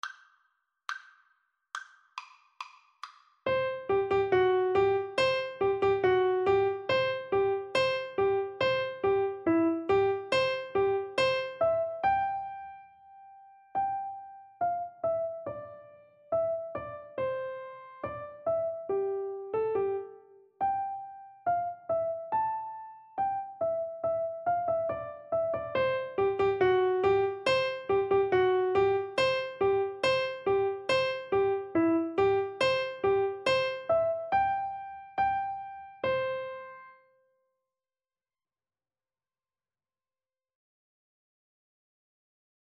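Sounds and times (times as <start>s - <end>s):
piano duet: 3.5s - 37.0s.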